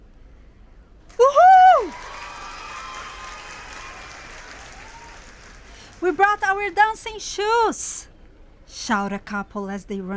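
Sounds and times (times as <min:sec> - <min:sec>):
crowd cheering: 0:01.1 - 0:07.2
speech: 0:06.0 - 0:08.1, 0:08.7 - 0:10.1.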